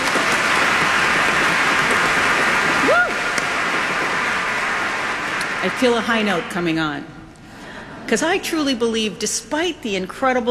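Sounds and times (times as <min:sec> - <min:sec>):
audience applause at a celebratory evening event: 0:00.0 - 0:06.8
speech: 0:05.6 - 0:07.2, 0:08.1 - 0:10.4.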